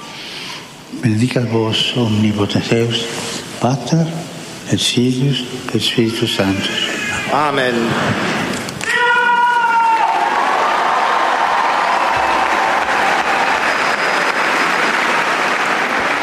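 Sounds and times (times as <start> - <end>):
speech: 0.9 - 8.4
storm of applause from pilgrim crowd: 9.8 - 16.2.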